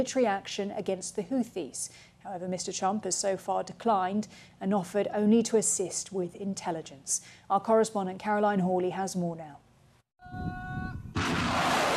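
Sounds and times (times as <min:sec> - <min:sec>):
speech: 0:00.0 - 0:09.6, 0:10.2 - 0:11.0
ballistic missiles fired at the port city of Mocha: 0:11.2 - 0:11.9.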